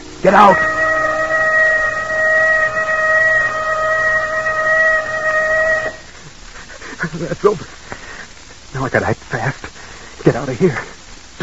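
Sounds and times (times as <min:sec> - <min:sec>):
warning whistle: 0:00.0 - 0:06.1
speech: 0:00.2 - 0:00.8, 0:07.2 - 0:07.8, 0:08.8 - 0:09.4, 0:10.2 - 0:11.0.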